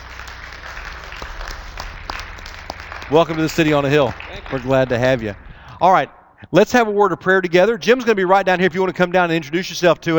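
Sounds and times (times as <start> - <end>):
crowd applause: 0.0 - 5.8
speech: 3.1 - 10.1.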